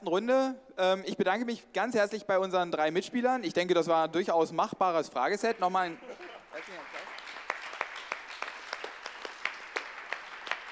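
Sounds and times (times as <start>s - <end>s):
speech: 0.0s - 6.9s
audience applause: 6.1s - 10.7s.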